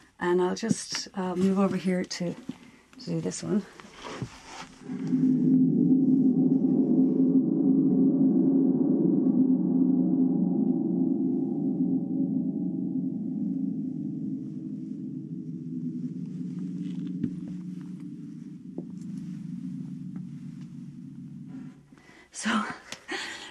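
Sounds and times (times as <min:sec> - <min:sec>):
speech: 0:00.2 - 0:05.4
thunder drum shaken, metallic rumble: 0:04.8 - 0:22.0.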